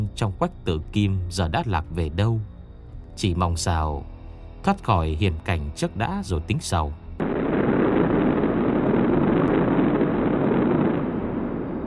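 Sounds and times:
speech: 0:00.2 - 0:02.5, 0:03.2 - 0:07.3
roaring gust of wind, rumbling like thunder: 0:07.2 - 0:11.8.

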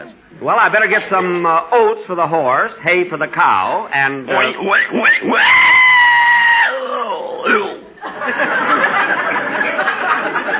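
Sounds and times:
speech: 0:00.0 - 0:05.8
pig squealing as a canary steps on it: 0:04.3 - 0:07.8
laughter: 0:08.0 - 0:10.5.

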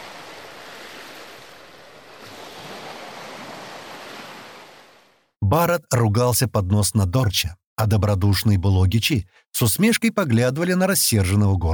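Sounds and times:
calm sea waves washing in: 0:00.0 - 0:05.4
speech: 0:05.5 - 0:11.7.

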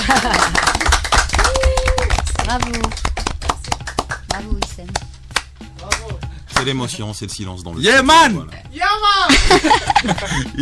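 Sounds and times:
laughter: 0:00.0 - 0:01.1, 0:09.3 - 0:10.6
hands clapping: 0:00.0 - 0:06.8
speech: 0:00.1 - 0:00.7, 0:02.5 - 0:03.0, 0:06.6 - 0:10.6.

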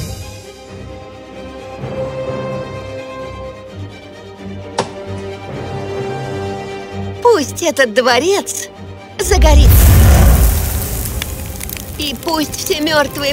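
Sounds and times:
speech: 0:07.4 - 0:10.0, 0:12.0 - 0:13.3
wooden things cracking and clattering apart: 0:10.6 - 0:13.3.

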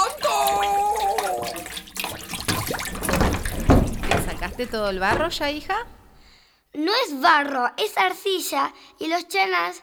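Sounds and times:
river water flowing: 0:00.1 - 0:06.3
speech: 0:04.6 - 0:06.0, 0:06.8 - 0:09.8.

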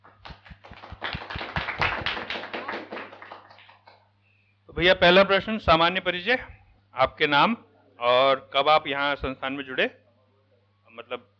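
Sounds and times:
group bursting into loud welcoming applause: 0:00.0 - 0:04.0
speech: 0:04.8 - 0:10.0, 0:11.0 - 0:11.3.

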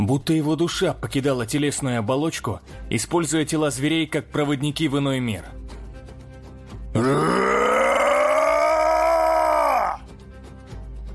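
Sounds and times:
speech: 0:00.0 - 0:05.6, 0:07.0 - 0:07.2
giant roaring in agony: 0:07.0 - 0:10.0.

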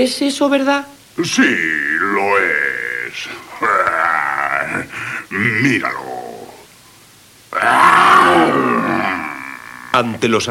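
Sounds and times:
speech: 0:00.0 - 0:06.1, 0:07.5 - 0:08.7, 0:10.0 - 0:10.4
lion roaring: 0:01.4 - 0:06.7, 0:07.5 - 0:10.1.

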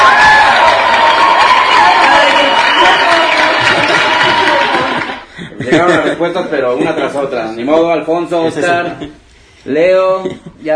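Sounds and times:
audience applause: 0:00.0 - 0:05.3
laughter: 0:02.9 - 0:07.3
speech: 0:06.0 - 0:10.7.

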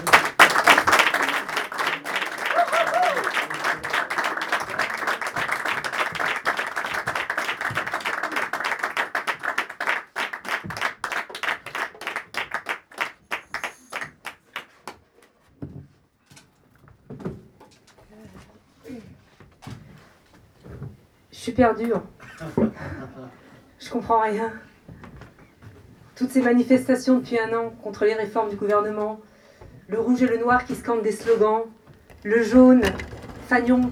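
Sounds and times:
audience ovation welcoming a group of singers at a concert: 0:00.0 - 0:14.7, 0:32.1 - 0:33.9
speech: 0:21.5 - 0:22.1, 0:23.9 - 0:24.7, 0:26.2 - 0:29.3, 0:29.9 - 0:33.9.

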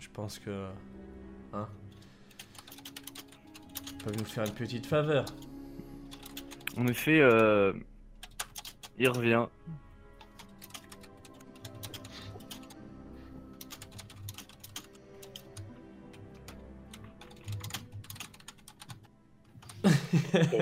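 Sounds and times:
speech: 0:00.1 - 0:01.9, 0:04.0 - 0:05.4, 0:06.8 - 0:07.9, 0:09.0 - 0:09.9, 0:20.4 - 0:20.6
typing on an old plastic computer keyboard: 0:02.3 - 0:04.6, 0:08.2 - 0:09.2, 0:10.3 - 0:12.7, 0:13.6 - 0:15.6, 0:16.4 - 0:19.1
laughter: 0:19.8 - 0:20.6.

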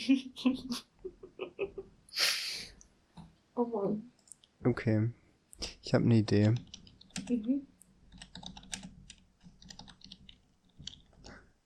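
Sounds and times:
speech: 0:00.0 - 0:00.9, 0:03.6 - 0:05.2, 0:05.9 - 0:06.7, 0:07.3 - 0:07.7
typing on a computer keyboard: 0:06.4 - 0:07.4, 0:08.1 - 0:11.3.

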